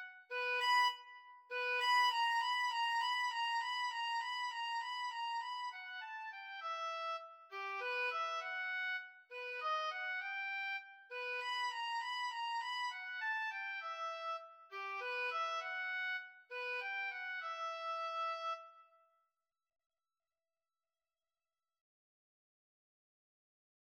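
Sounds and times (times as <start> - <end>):
oboe duet: 0.0 - 18.6.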